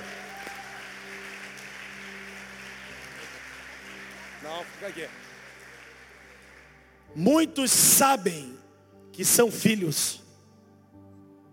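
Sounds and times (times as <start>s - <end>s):
audience applause: 0.0s - 7.9s
speech: 4.5s - 5.3s, 7.2s - 8.6s, 9.2s - 10.2s.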